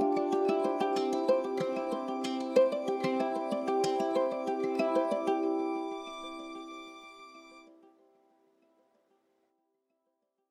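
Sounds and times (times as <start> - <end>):
ukulele playing: 0.0 - 6.8.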